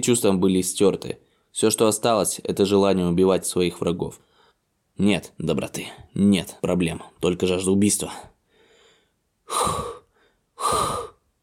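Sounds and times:
speech: 0.0s - 4.3s, 5.0s - 8.3s, 9.5s - 9.8s
heavy breathing in a gravity room: 8.4s - 11.2s.

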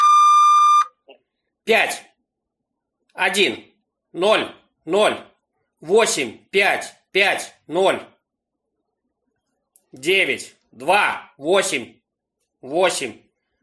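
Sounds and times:
electronic beep tone from an automated phone robot: 0.0s - 1.0s
man speaking: 1.6s - 2.2s, 3.2s - 8.2s, 9.9s - 12.0s, 12.6s - 13.3s.

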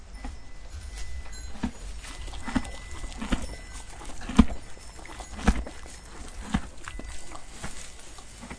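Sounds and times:
horse hooves clopping at a walk: 0.1s - 8.5s.

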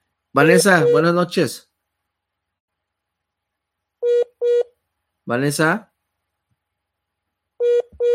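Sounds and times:
speech: 0.4s - 1.7s, 5.3s - 5.9s
telephone line tone after dropped call: 4.0s - 4.7s, 7.6s - 8.1s.

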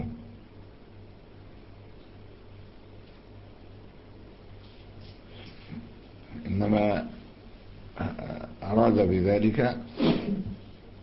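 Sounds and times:
speech: 9.0s - 10.4s
sneeze: 10.0s - 10.5s.

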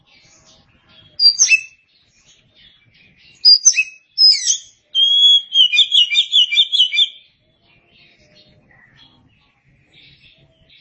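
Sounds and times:
Oriental magpie-robin song: 0.2s - 7.4s.

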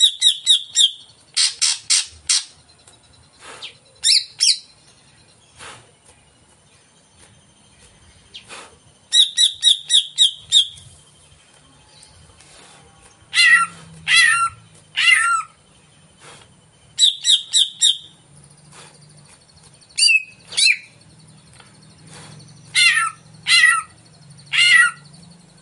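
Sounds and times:
caged greater green leafbird singing vigorously as a lure: 0.0s - 25.6s.

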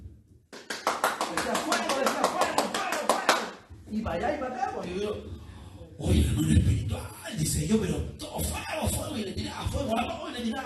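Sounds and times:
hand clapping: 0.5s - 3.6s
speech: 4.0s - 5.4s, 6.0s - 10.6s.

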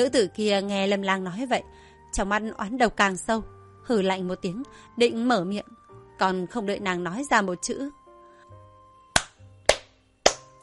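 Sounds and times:
speech: 0.0s - 8.0s
hand claps: 9.1s - 10.6s.

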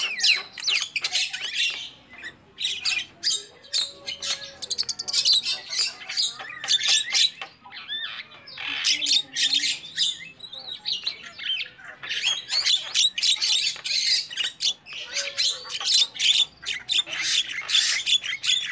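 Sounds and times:
lovebird squawking calls: 0.0s - 10.3s, 11.0s - 18.6s.

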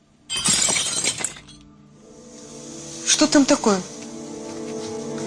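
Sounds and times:
glass window shattering: 0.2s - 1.7s
speech: 3.1s - 3.9s.

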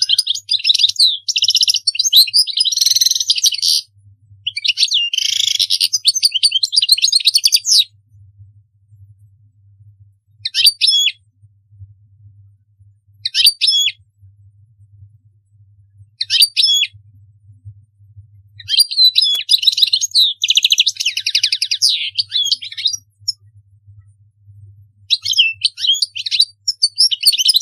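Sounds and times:
European goldfinch singing: 0.0s - 7.9s, 10.4s - 11.2s, 13.2s - 14.0s, 16.2s - 17.0s, 18.6s - 23.4s, 25.1s - 27.6s
faint low hum: 8.0s - 10.5s, 11.2s - 13.3s, 14.0s - 19.9s, 20.5s - 25.9s.

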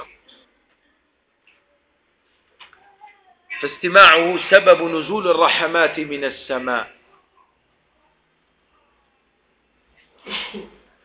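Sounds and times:
speech: 3.6s - 7.0s
person sneezing during a religious lesson: 10.2s - 10.9s.

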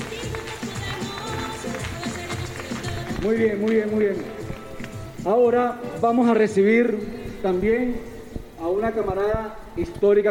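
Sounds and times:
audience applause: 0.0s - 3.4s
speech: 3.2s - 4.4s, 5.2s - 10.2s.

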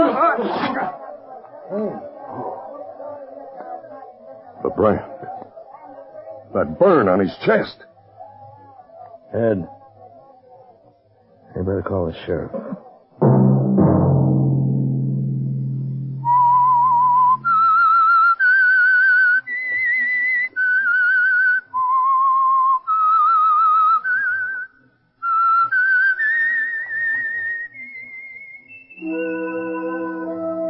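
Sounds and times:
speech: 0.4s - 2.5s, 4.6s - 5.3s, 6.5s - 7.9s, 9.3s - 9.8s, 11.6s - 13.3s
low resonant chord: 13.2s - 16.9s
whistled tune used as a radio program's signature signal: 16.2s - 30.6s.

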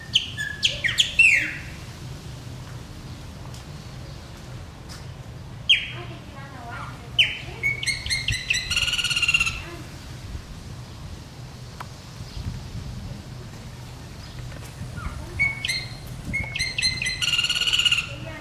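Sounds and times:
chopi blackbird song: 0.0s - 1.7s, 5.7s - 6.0s, 7.2s - 9.6s, 15.0s - 18.1s.

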